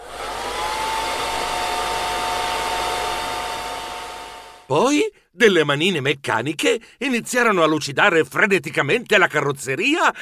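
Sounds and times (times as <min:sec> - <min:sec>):
jets of hot air blowing: 0:00.0 - 0:04.7
speech: 0:04.7 - 0:10.2.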